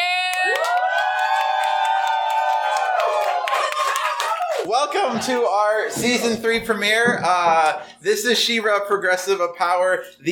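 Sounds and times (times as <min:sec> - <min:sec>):
scattered clapping: 0:00.0 - 0:05.5
live audience cheering with screams and whoops: 0:00.0 - 0:06.0
speech: 0:04.8 - 0:10.3.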